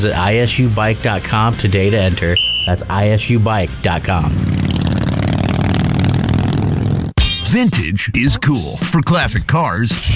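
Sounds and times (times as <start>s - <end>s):
speech: 0.0s - 4.7s, 7.5s - 10.1s
custom-painted motorcycle with aftermarket parts revving: 0.0s - 7.2s.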